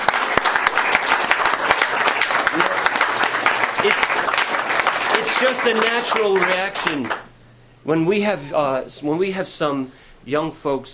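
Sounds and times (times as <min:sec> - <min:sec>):
audience applauding: 0:00.0 - 0:07.3
speech: 0:05.4 - 0:07.2, 0:07.8 - 0:10.9.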